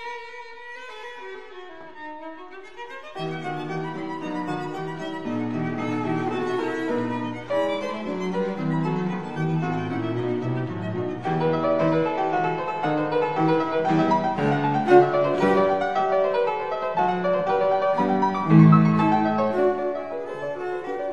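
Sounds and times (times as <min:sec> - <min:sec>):
piano trio playing a presto in E minor: 0:03.2 - 0:21.1.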